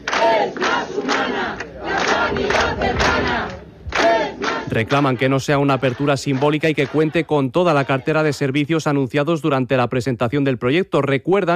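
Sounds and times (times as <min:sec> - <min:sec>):
large protest crowd chanting at a rally: 0:00.0 - 0:08.5
speech: 0:04.7 - 0:11.5.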